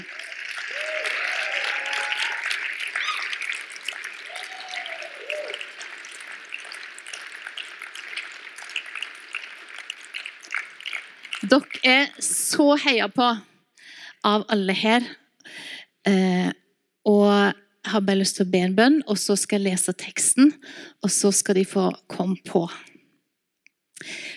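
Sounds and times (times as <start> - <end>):
audience applause: 0.0 - 12.2
speech: 11.5 - 13.5, 14.2 - 15.2, 16.0 - 16.5, 18.0 - 22.9.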